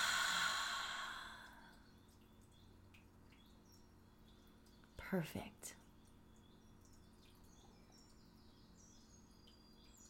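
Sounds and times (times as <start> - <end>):
deep breath out through the mouth: 0.0 - 1.7
speech: 5.1 - 5.8.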